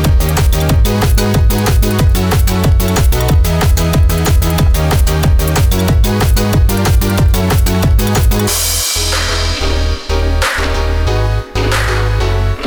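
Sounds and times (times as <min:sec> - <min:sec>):
instrumental music: 0:00.0 - 0:12.6.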